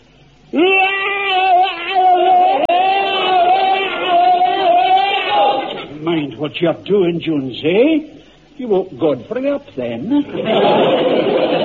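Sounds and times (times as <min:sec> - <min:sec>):
man letting out a battle scream in bayonet drill: 0:00.5 - 0:05.9
laughter: 0:01.4 - 0:05.9, 0:10.1 - 0:11.6
speech: 0:06.4 - 0:11.6.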